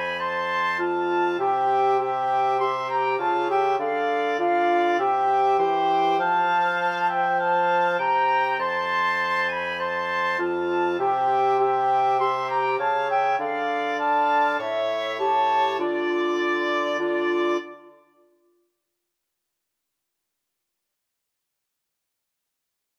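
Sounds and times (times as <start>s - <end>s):
wind quartet playing a national anthem: 0.0s - 18.2s.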